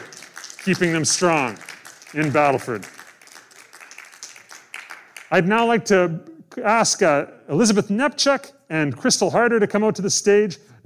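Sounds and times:
crowd applauding: 0:00.0 - 0:05.7
speech: 0:00.6 - 0:03.0, 0:05.3 - 0:10.8.

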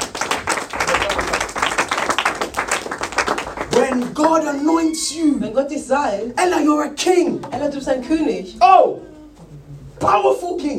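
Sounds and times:
audience clapping: 0:00.0 - 0:04.6
speech: 0:03.8 - 0:09.1, 0:10.0 - 0:10.7.

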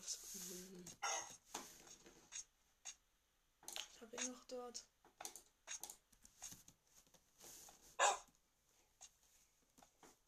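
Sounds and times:
speech: 0:00.0 - 0:02.2, 0:04.0 - 0:05.0
faint dog barking: 0:01.0 - 0:01.4, 0:08.0 - 0:08.3.

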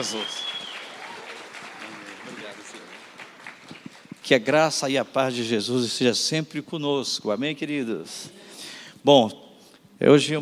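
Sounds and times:
speech: 0:00.0 - 0:00.5, 0:03.8 - 0:09.4, 0:10.0 - 0:10.4
audience applause: 0:00.0 - 0:04.6.

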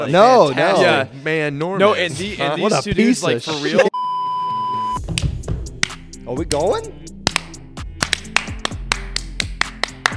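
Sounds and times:
speech: 0:00.0 - 0:04.0, 0:06.3 - 0:07.0
steady rhythmic clapping: 0:05.0 - 0:10.1.

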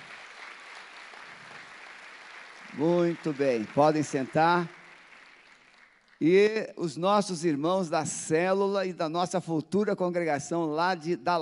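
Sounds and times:
audience applause: 0:00.0 - 0:06.5
speech: 0:02.7 - 0:04.8, 0:06.2 - 0:11.3.

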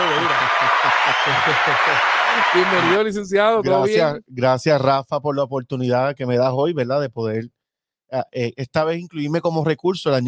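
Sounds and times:
applause: 0:00.0 - 0:03.0
laughter: 0:00.0 - 0:04.1
speech: 0:01.2 - 0:10.2.

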